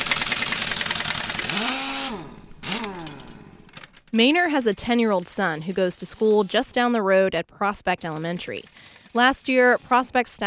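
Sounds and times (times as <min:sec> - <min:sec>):
truck engine running in driveway: 0:00.0 - 0:04.7
speech: 0:02.1 - 0:02.8, 0:04.1 - 0:10.4.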